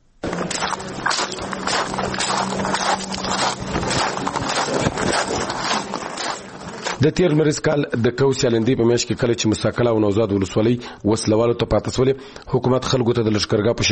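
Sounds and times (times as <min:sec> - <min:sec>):
footsteps walking in sand: 0:00.2 - 0:07.4
speech: 0:07.0 - 0:13.9.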